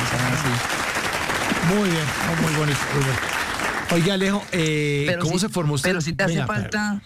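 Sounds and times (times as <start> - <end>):
applause sound effect: 0.0 - 5.1
speech: 1.7 - 7.0.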